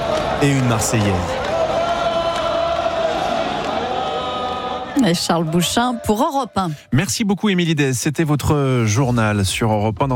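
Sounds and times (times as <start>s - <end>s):
large crowd applauding at a celebration: 0.0s - 6.2s
speech: 0.4s - 1.5s, 5.0s - 10.1s.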